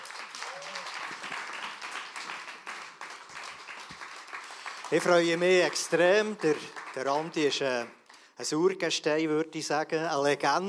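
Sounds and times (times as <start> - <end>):
audience applause: 0.0 - 8.0
speech: 4.9 - 10.6.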